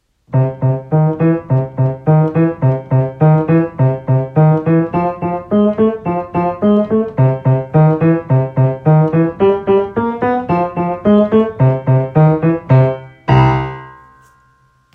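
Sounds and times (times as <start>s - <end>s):
boogie piano: 0.3s - 14.3s.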